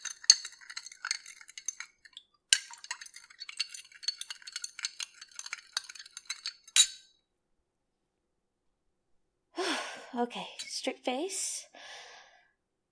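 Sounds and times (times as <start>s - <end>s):
something being stirred and mixed in a container: 0.0s - 7.0s
speech: 10.2s - 11.7s.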